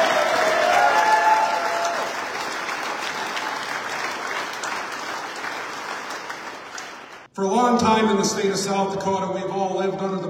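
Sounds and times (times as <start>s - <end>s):
audience applause: 0.0s - 7.3s
speech: 7.6s - 10.2s.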